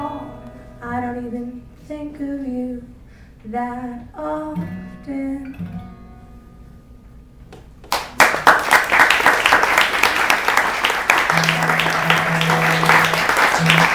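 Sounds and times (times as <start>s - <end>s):
speech: 1.2s - 5.9s
crowd applause after a song: 7.9s - 13.9s.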